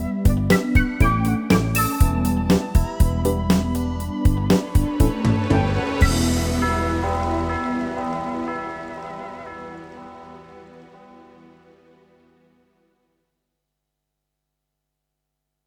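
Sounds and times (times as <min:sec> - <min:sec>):
MIDI music: 0:00.0 - 0:12.3.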